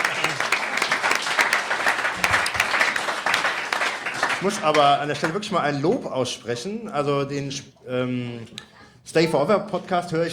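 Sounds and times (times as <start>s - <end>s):
audience applause: 0.0s - 5.4s
speech: 4.4s - 10.3s.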